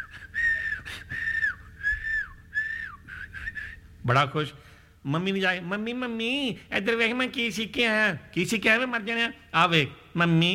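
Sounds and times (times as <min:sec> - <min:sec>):
man whistling around the house: 0:00.0 - 0:03.9
speech: 0:04.0 - 0:10.5.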